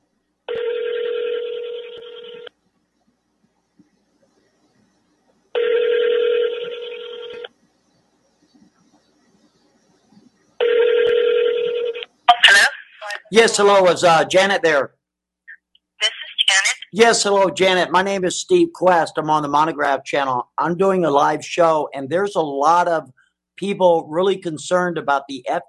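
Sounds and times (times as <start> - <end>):
telephone ringing for an incoming call: 0.5 - 2.5, 5.5 - 7.5, 10.6 - 12.7
speech: 13.3 - 15.0, 16.9 - 25.6.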